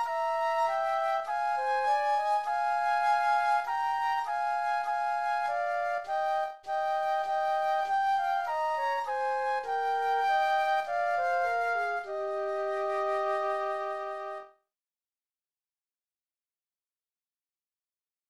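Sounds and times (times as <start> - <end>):
flute duet: 0.0 - 14.6.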